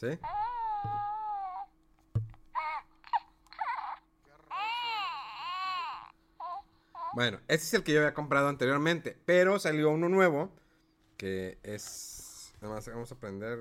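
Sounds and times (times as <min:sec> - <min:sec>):
speech: 0:00.0 - 0:00.4, 0:07.2 - 0:10.6, 0:11.2 - 0:13.5
Baby Yoda toy electronic crying when squeezed: 0:00.2 - 0:01.8, 0:02.5 - 0:07.2
faint handling thumps: 0:02.0 - 0:02.5.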